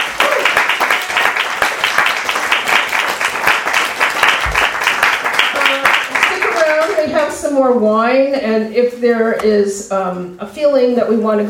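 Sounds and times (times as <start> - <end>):
audience applause: 0.0 - 7.0
speech: 7.6 - 11.4.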